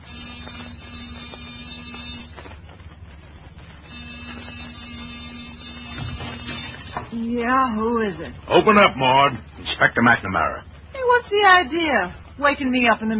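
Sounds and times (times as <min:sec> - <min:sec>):
door buzzer being pressed: 0:00.0 - 0:02.6, 0:03.7 - 0:08.4
speech: 0:07.2 - 0:13.1.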